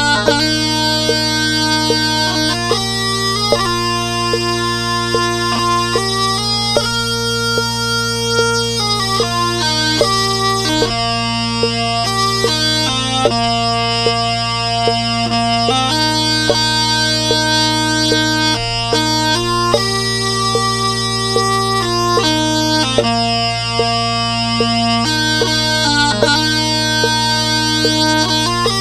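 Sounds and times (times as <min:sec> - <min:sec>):
pipe music: 0:00.0 - 0:28.7.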